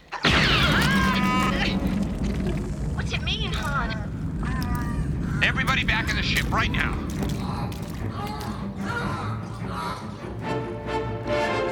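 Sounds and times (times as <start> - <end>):
blaster shot hitting the ground: 0.2 - 7.1
quake-like sustained rumble: 0.3 - 10.7
speech: 5.8 - 8.4.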